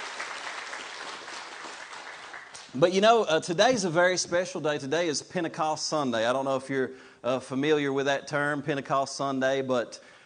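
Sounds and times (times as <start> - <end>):
crowd applauding: 0.0 - 2.8
speech: 2.7 - 10.1.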